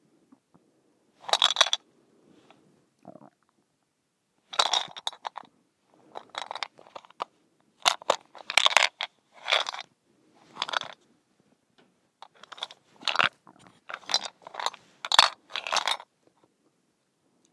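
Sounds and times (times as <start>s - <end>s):
mint shaker rattling: 1.2s - 1.8s, 4.5s - 5.5s, 6.1s - 11.0s, 12.2s - 16.1s.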